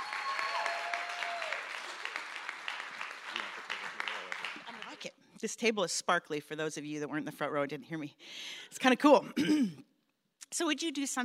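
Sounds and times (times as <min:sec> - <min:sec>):
crowd applause: 0:00.0 - 0:05.0
speech: 0:05.0 - 0:09.9, 0:10.5 - 0:11.2.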